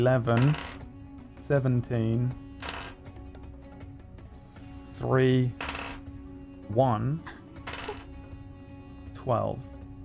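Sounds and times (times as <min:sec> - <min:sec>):
speech: 0:00.0 - 0:00.8, 0:01.5 - 0:02.4, 0:05.0 - 0:05.7, 0:06.7 - 0:07.4, 0:09.2 - 0:09.7
dice rolling during a tabletop roleplaying game: 0:00.4 - 0:00.8, 0:05.6 - 0:06.0.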